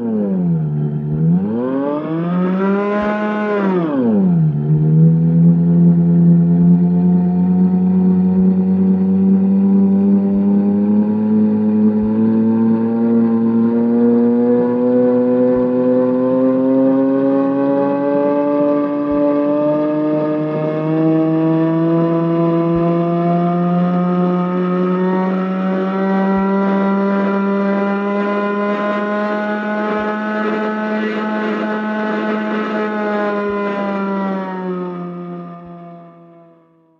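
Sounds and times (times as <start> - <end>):
noise machine drone from abrasive wheel exciting a string, drum head and acoustic horn: 0.0 - 36.9.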